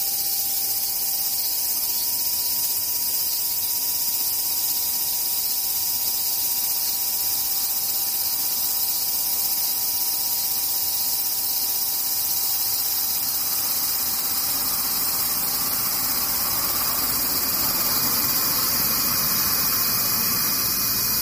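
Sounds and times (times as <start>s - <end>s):
cicadas droning: 0.0s - 21.1s.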